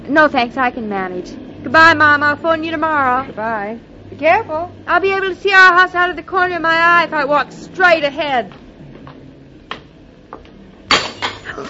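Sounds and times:
speech: 0.1s - 8.6s
glass milk bottle dropped and breaking: 10.9s - 11.6s.

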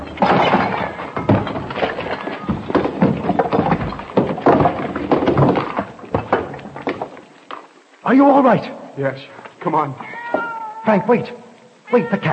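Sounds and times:
wooden structure crumbling and collapsing: 0.0s - 7.8s
speech: 8.1s - 10.1s, 10.9s - 12.3s.

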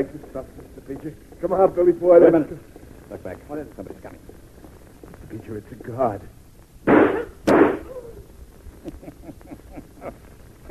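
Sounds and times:
speech: 0.0s - 4.3s, 5.3s - 7.3s, 10.0s - 10.6s
gunshots in a radio drama: 6.8s - 7.9s
laughter: 8.8s - 10.3s.

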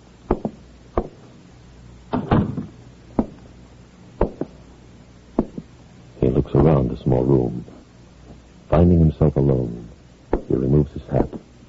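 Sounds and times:
knocking on a door: 2.3s - 3.4s, 4.2s - 4.5s, 5.4s - 5.7s
speech: 6.8s - 7.8s, 8.7s - 9.9s, 10.5s - 11.5s.

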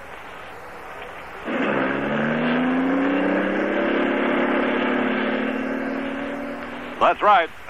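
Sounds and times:
car engine starting and cruising: 1.3s - 7.4s
speech: 7.0s - 7.6s.

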